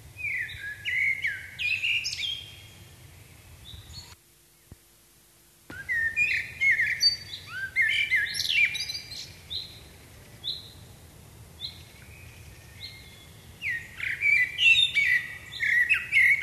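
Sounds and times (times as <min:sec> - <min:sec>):
common blackbird Turdus merula singing: 0:00.2 - 0:02.8, 0:05.7 - 0:10.8, 0:11.6 - 0:16.4.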